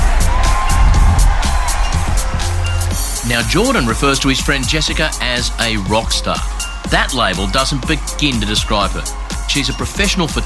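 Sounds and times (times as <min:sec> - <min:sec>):
audience applause: 0:00.0 - 0:04.4
speech: 0:03.4 - 0:10.4.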